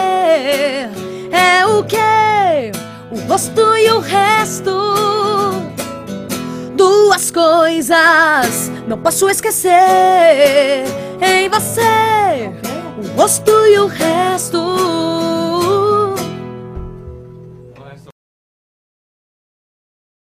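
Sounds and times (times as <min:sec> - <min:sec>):
voice: 0:00.0 - 0:05.7, 0:06.7 - 0:16.3
acoustic guitar: 0:00.0 - 0:18.1.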